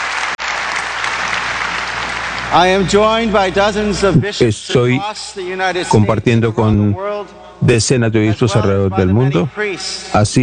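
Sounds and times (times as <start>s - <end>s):
crowd applause: 0.0s - 4.0s
speech: 2.5s - 10.4s.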